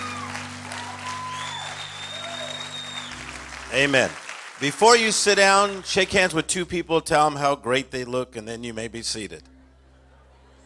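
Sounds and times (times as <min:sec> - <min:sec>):
audience applauding the music group: 0:00.0 - 0:06.3
faint whistles: 0:01.4 - 0:03.2
speech: 0:03.7 - 0:09.5.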